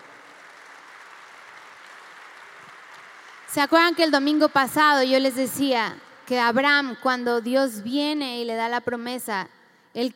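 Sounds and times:
audience applauding: 0:00.0 - 0:04.4
speech: 0:03.5 - 0:10.1.

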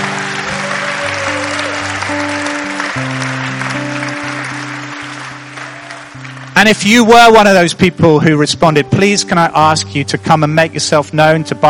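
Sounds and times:
audience applause: 0:00.0 - 0:06.9
speech: 0:06.6 - 0:11.6.

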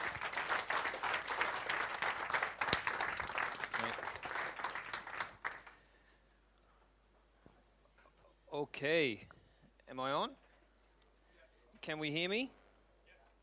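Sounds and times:
audience round of applause: 0:00.0 - 0:05.8
speech: 0:08.8 - 0:09.3, 0:09.9 - 0:10.4, 0:11.9 - 0:12.6.

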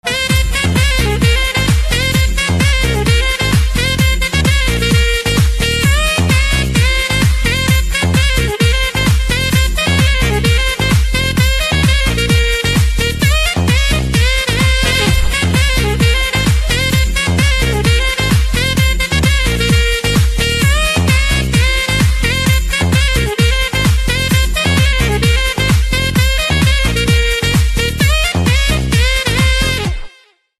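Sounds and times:
saxophone: 0:00.0 - 0:30.5.

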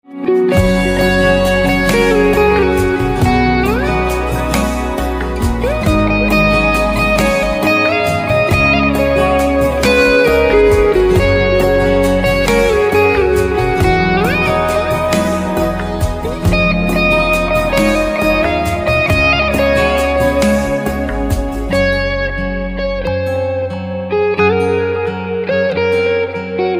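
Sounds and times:
guitar: 0:00.0 - 0:26.7.

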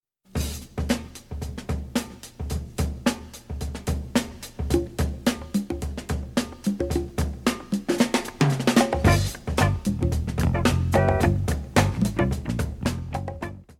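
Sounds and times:
music beat: 0:00.4 - 0:13.7.

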